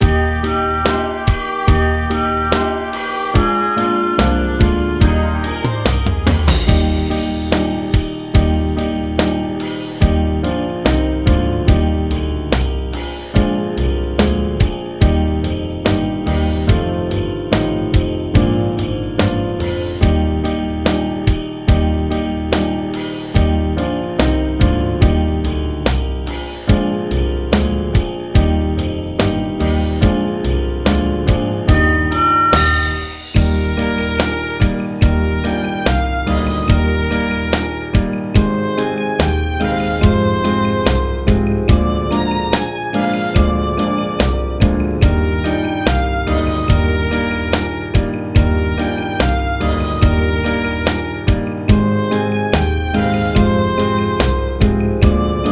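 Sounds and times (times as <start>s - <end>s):
Christmas song playback: 0.0s - 55.5s.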